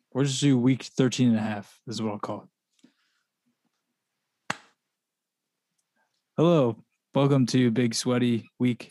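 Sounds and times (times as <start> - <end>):
speech: 0.2 - 2.5, 6.4 - 8.8
hand clap: 4.5 - 4.8.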